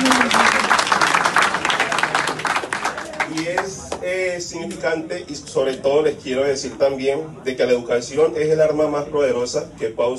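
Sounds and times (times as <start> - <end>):
audience applauding: 0.0 - 4.0
speech: 4.5 - 10.1.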